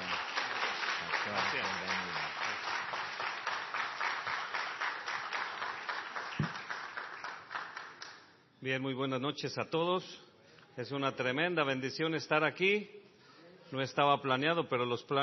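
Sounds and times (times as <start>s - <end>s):
loud audience applause: 0.0s - 8.2s
speech: 8.6s - 13.0s, 13.7s - 15.2s.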